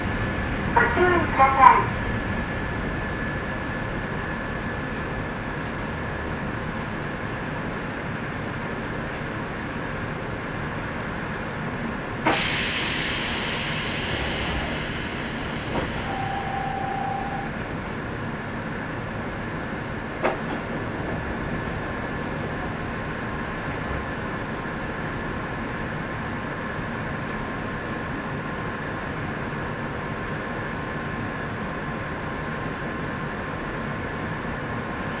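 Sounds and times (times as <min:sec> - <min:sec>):
local railway train running, heard onboard: 0:00.0 - 0:35.1
speech: 0:00.8 - 0:02.0
hissing rush: 0:12.3 - 0:16.8
short whine: 0:13.8 - 0:17.5.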